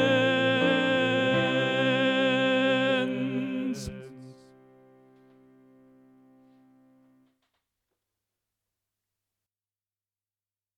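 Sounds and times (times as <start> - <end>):
soprano voice: 0.0 - 4.6.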